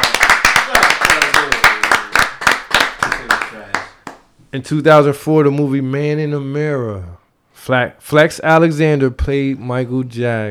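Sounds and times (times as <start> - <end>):
audience clapping: 0.0 - 4.3
speech: 4.5 - 10.4.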